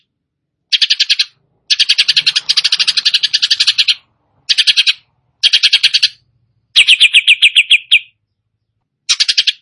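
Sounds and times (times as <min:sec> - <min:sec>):
greater green leafbird singing sharp strident notes: 0:00.7 - 0:09.6.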